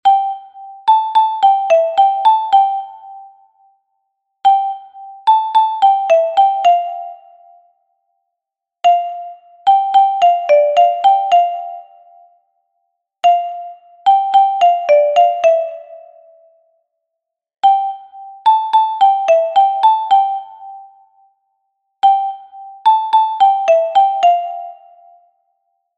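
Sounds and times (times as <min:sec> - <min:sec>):
soprano xylophone: 0:00.0 - 0:03.7, 0:04.5 - 0:07.7, 0:08.8 - 0:12.4, 0:13.2 - 0:16.6, 0:17.6 - 0:21.3, 0:22.0 - 0:25.4.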